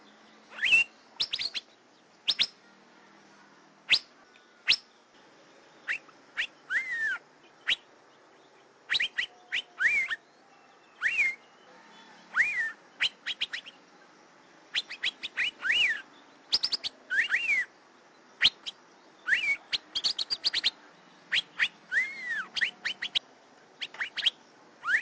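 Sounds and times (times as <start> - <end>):
Asian fairy-bluebird whistles and chirps: 0.5 - 2.6, 3.9 - 4.1, 4.7 - 4.9, 5.9 - 7.9, 8.9 - 13.8, 14.7 - 17.7, 18.4 - 23.2, 23.8 - 25.0.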